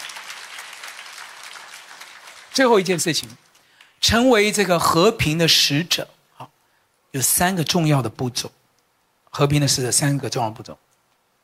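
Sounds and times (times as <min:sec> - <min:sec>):
audience clapping hands: 0:00.0 - 0:04.0
speech: 0:02.6 - 0:06.2, 0:07.1 - 0:08.6, 0:09.3 - 0:10.9.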